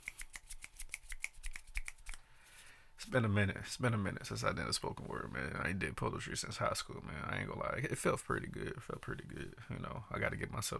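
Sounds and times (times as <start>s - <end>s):
finger snapping: 0.0s - 2.2s
speech: 3.1s - 10.7s.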